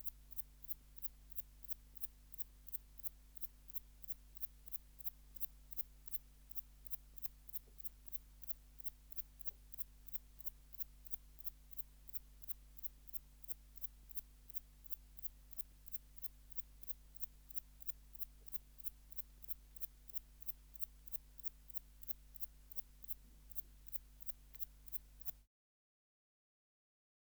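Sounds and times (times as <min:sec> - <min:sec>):
bush-cricket calling: 0:00.0 - 0:25.4.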